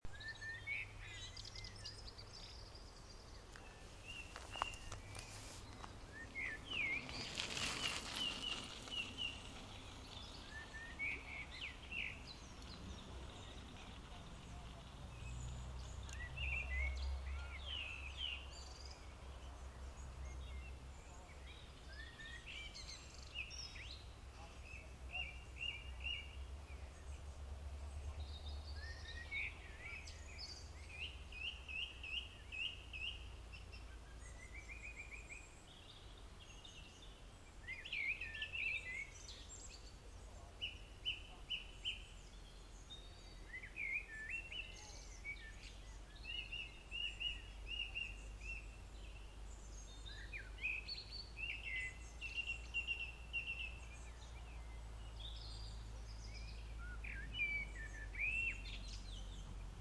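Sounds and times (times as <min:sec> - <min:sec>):
birdsong on radio: 0:00.0 - 0:59.7.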